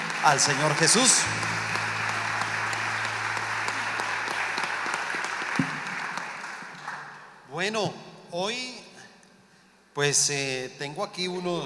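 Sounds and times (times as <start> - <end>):
loud audience applause: 0.0 - 7.4
speech: 0.2 - 1.6, 7.6 - 8.8, 10.0 - 11.6.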